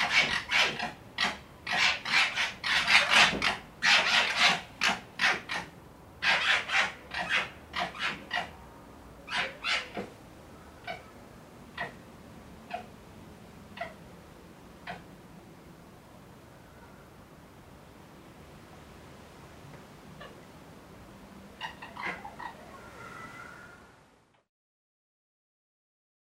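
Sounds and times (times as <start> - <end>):
red fox chattering: 0.0 - 8.6, 9.3 - 10.1, 10.8 - 12.0, 12.6 - 13.0, 13.7 - 14.0, 14.8 - 15.1, 21.6 - 22.8.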